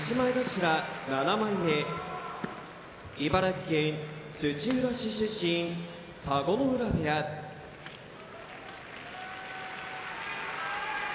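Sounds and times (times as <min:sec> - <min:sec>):
crowd at a sumo tournament applauding: 0:00.0 - 0:03.1, 0:08.0 - 0:11.1
speech: 0:00.1 - 0:02.2, 0:03.2 - 0:07.4.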